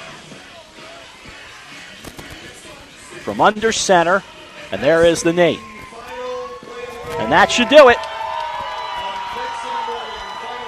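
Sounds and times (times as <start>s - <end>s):
speech: 3.2s - 5.7s, 7.3s - 8.1s
announcer talking: 3.3s - 5.6s, 7.2s - 8.0s
football crowd cheering as a Thanksgiving Day game ends: 4.5s - 10.6s.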